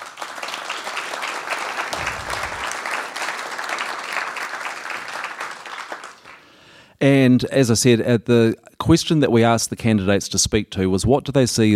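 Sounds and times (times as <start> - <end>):
audience applause welcoming election candidates at a meeting: 0.0 - 6.5
speech: 7.0 - 11.7.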